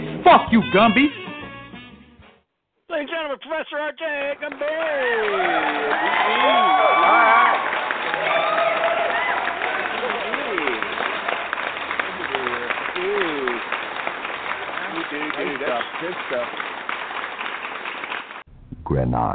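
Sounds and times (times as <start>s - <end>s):
speech: 0.3s - 1.2s, 3.0s - 7.7s, 15.1s - 16.7s, 18.9s - 19.2s
crowd clapping: 4.2s - 18.5s
people shouting: 5.0s - 7.7s.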